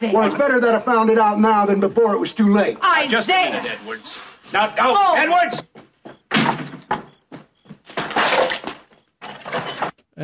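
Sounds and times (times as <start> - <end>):
speech: 0.0 - 5.8
gate being kicked and smashed in a film scene: 6.3 - 7.1, 7.8 - 10.0.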